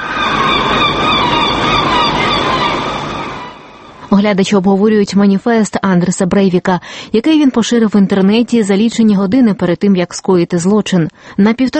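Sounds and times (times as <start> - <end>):
seagulls crying: 0.0 - 4.0
noise: 0.0 - 11.7
speech: 4.1 - 11.7.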